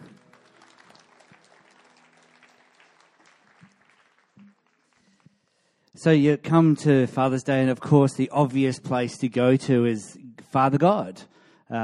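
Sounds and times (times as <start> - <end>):
audience applauding for the band: 0.0 - 5.8
speech: 6.0 - 11.8.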